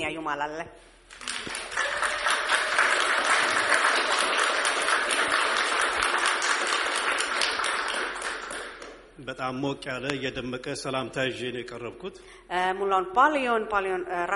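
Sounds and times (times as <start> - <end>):
speech: 0.0 - 1.6, 9.2 - 14.3
congregation applauding during a church service: 1.1 - 9.0.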